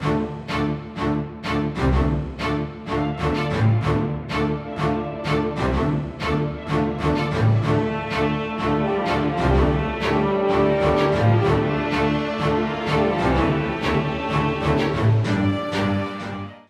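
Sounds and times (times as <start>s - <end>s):
outro music: 0.0s - 16.6s.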